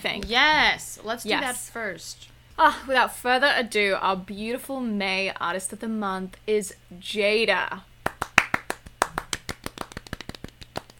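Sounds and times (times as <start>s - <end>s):
speech: 0.1s - 7.9s
round of applause: 8.1s - 10.9s.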